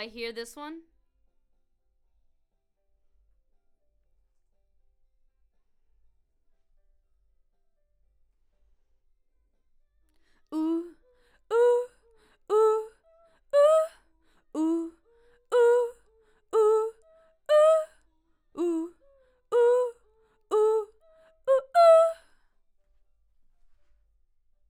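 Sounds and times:
background vocals: 10.5s - 17.9s, 18.6s - 20.9s, 21.5s - 22.2s.

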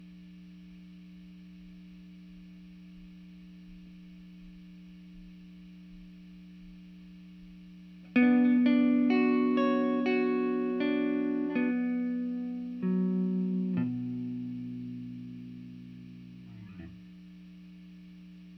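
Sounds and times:
guitar: 8.0s - 18.5s.

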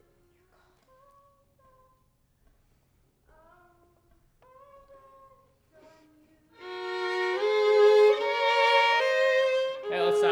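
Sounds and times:
violin: 6.6s - 10.3s.

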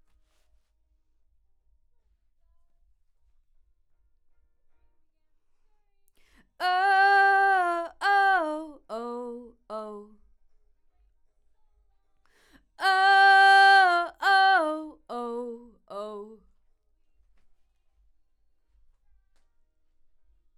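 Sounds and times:
vocal: 6.6s - 10.1s, 12.8s - 16.4s.

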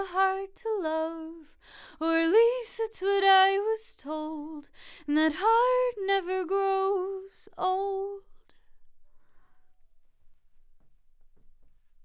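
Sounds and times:
vocals: 0.0s - 8.6s.

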